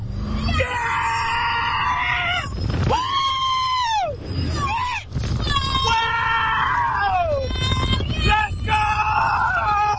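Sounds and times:
roller coaster riders screaming: 0:00.3 - 0:09.9.

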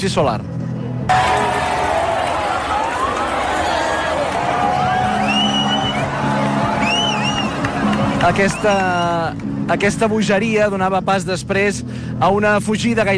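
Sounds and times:
speech: 0:00.0 - 0:01.3, 0:08.2 - 0:13.1
crowd cheering at solar eclipse totality: 0:01.1 - 0:09.4
high whistles: 0:04.8 - 0:07.6.

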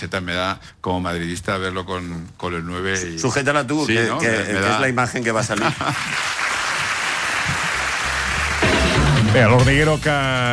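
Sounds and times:
speech: 0:00.0 - 0:06.4, 0:09.4 - 0:10.5
studio audience applause: 0:05.5 - 0:09.6.

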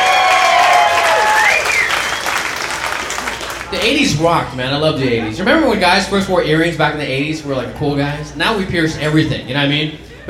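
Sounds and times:
audience applause: 0:00.0 - 0:03.8
speech: 0:03.8 - 0:10.2.

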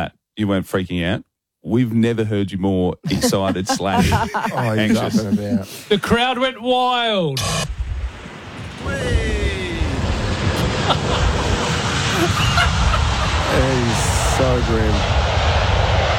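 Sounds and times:
speech: 0:00.0 - 0:07.8, 0:13.6 - 0:15.2
laughter: 0:03.1 - 0:06.1, 0:10.6 - 0:15.0
airplane landing engine roar: 0:08.5 - 0:16.1.

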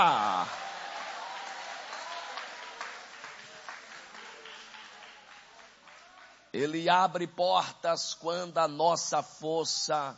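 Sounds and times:
speech: 0:00.0 - 0:00.6, 0:06.5 - 0:10.1
crowd applauding: 0:00.0 - 0:06.4.

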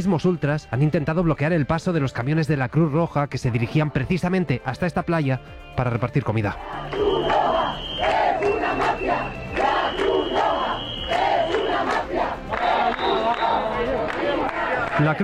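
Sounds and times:
speech: 0:00.0 - 0:07.5, 0:15.0 - 0:15.2
protest crowd chanting: 0:06.6 - 0:15.2.

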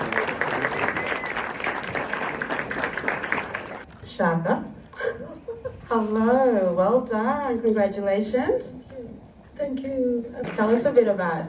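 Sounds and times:
audience applause: 0:00.0 - 0:03.8
speech: 0:04.2 - 0:05.3, 0:05.9 - 0:08.8, 0:09.7 - 0:11.4.

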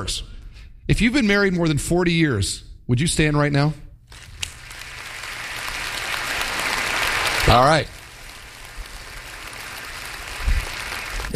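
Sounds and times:
speech: 0:00.0 - 0:00.3, 0:00.9 - 0:04.3, 0:07.5 - 0:08.0
audience clapping: 0:04.1 - 0:11.3.

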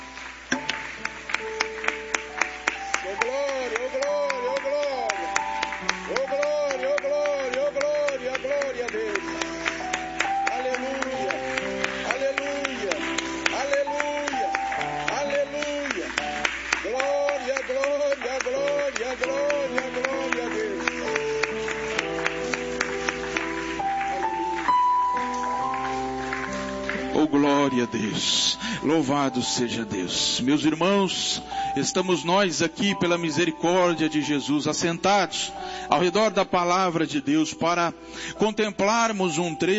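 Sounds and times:
audience clapping rhythmically: 0:00.0 - 0:28.1
instrumental music: 0:00.0 - 0:39.7
speech: 0:28.9 - 0:39.7.

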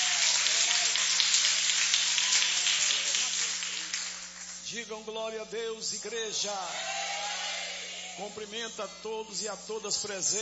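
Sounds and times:
audience applauding: 0:00.0 - 0:04.7
speech: 0:04.7 - 0:07.1, 0:08.2 - 0:10.3.

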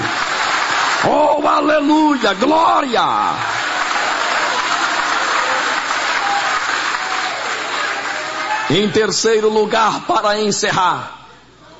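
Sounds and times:
audience applause: 0:00.0 - 0:08.9
speech: 0:01.0 - 0:03.6, 0:08.7 - 0:11.2.

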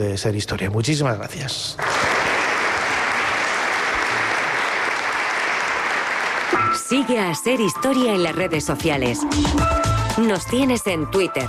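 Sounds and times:
speech: 0:00.0 - 0:02.2, 0:06.9 - 0:11.4
warm crowd applause: 0:01.8 - 0:06.7.

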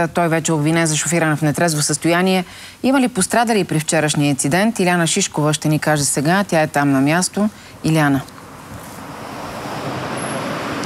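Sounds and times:
speech: 0:00.0 - 0:08.4
road traffic at the Gurko and Tsar Ivan Shishman intersection in central Sofia: 0:06.2 - 0:10.8.

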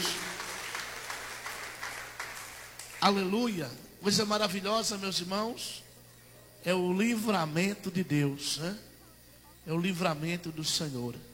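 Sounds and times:
church congregation clapping in praise: 0:00.0 - 0:03.6
speech: 0:03.0 - 0:05.8, 0:06.6 - 0:08.9, 0:09.6 - 0:11.3.

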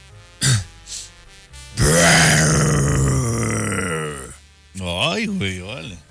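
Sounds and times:
person imitating a lion's roar: 0:01.8 - 0:04.4
speech: 0:05.2 - 0:06.0.

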